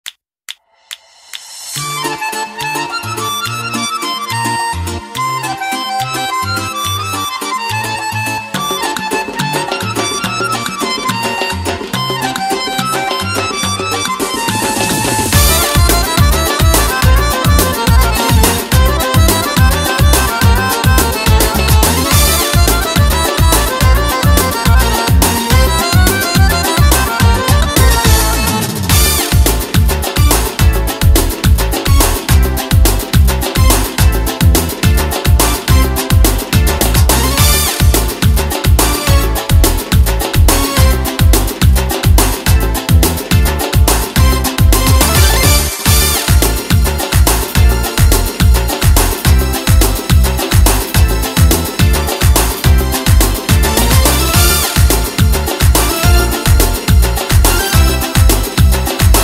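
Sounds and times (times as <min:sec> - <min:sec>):
karaoke backing track: 0:01.6 - 0:59.2.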